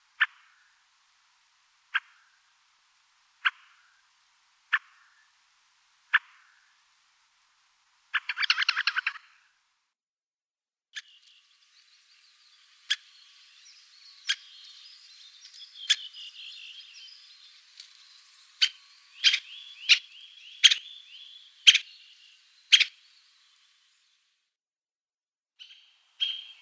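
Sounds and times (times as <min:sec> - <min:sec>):
white-backed woodpecker call: 0:08.2 - 0:09.3, 0:11.0 - 0:23.3, 0:25.6 - 0:26.5.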